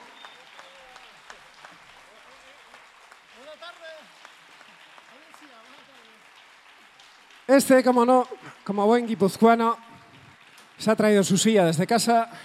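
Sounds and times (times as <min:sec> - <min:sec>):
room full of people clapping: 0:00.0 - 0:12.4
speech: 0:07.5 - 0:09.9, 0:10.8 - 0:12.4.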